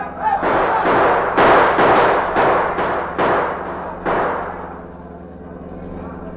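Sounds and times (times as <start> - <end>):
gunshots fired at a passing car: 0.0 - 4.9
low car engine drone: 0.0 - 6.3.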